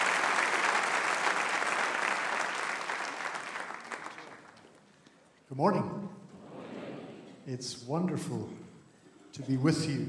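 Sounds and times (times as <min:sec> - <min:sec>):
church congregation applauding to welcome a visiting pastor: 0:00.0 - 0:05.0
speech: 0:05.5 - 0:06.2, 0:07.4 - 0:08.6, 0:09.4 - 0:10.0.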